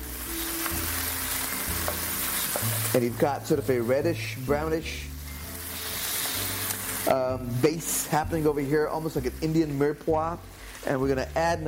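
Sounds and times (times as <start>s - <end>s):
tomatoes sizzling in a pan as they are stirred: 0.0s - 11.6s
speech: 3.0s - 5.1s, 7.1s - 11.6s.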